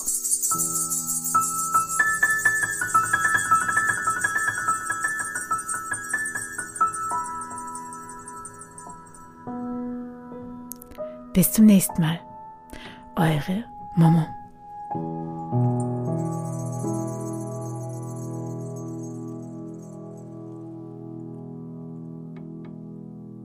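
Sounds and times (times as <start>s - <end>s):
small shop door bell jingling: 0.0s - 9.5s, 15.7s - 20.6s
speech: 11.4s - 12.3s, 13.2s - 14.4s.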